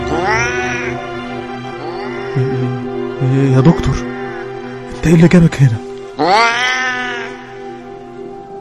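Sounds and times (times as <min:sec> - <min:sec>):
hairless cat meowing: 0:00.0 - 0:01.0, 0:06.2 - 0:07.4
speech: 0:03.4 - 0:04.2, 0:05.0 - 0:06.7.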